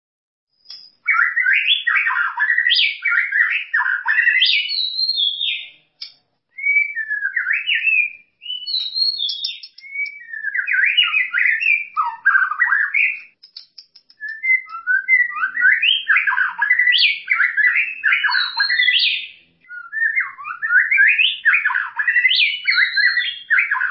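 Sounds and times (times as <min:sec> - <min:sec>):
White-rumped shama singing: 0:00.5 - 0:23.8.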